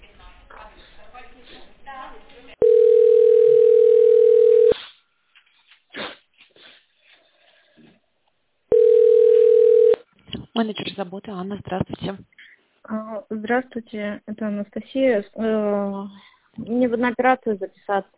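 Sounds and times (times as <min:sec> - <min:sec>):
telephone line tone during call transfer: 0:02.6 - 0:04.8, 0:08.7 - 0:10.0
speech: 0:10.6 - 0:12.3, 0:12.9 - 0:18.1.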